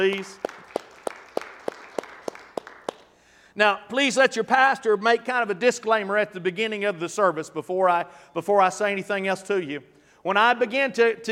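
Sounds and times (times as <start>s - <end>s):
speech: 0.0s - 0.5s, 3.6s - 11.3s
audience clapping in rhythm: 0.0s - 3.4s.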